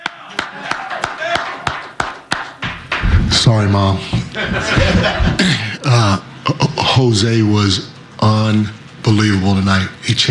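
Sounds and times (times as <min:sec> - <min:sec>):
hand clapping: 0:00.0 - 0:03.2
speech: 0:03.4 - 0:10.2
laughter: 0:04.1 - 0:06.0.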